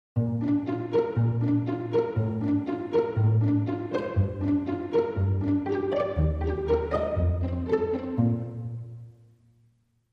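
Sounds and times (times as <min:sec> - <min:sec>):
strings: 0:00.2 - 0:09.4.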